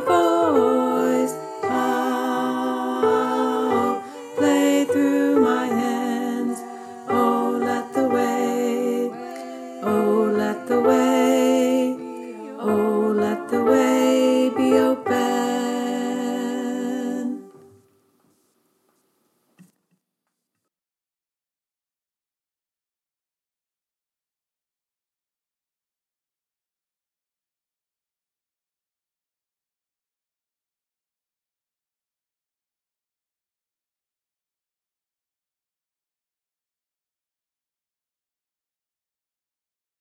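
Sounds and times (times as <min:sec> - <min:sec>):
tenor singing: 0:00.0 - 0:17.7.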